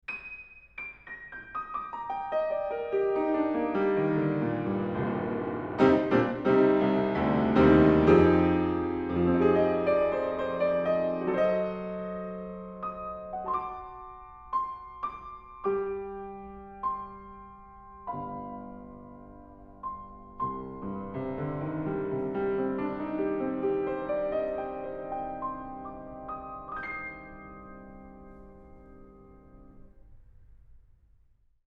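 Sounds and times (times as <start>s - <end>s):
piano: 0.0s - 31.4s.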